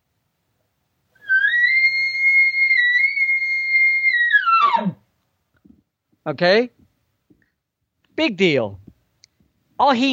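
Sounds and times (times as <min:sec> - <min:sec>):
bull bugling in reply to a location bugle: 0:01.2 - 0:05.0
speech: 0:06.3 - 0:06.8, 0:08.2 - 0:08.8, 0:09.8 - 0:10.1.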